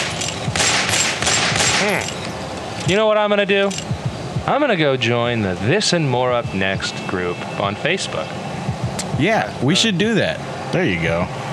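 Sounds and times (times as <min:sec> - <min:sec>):
gunfire from police officers shooting: 0:00.0 - 0:02.0
speech: 0:01.8 - 0:08.4, 0:09.2 - 0:11.4.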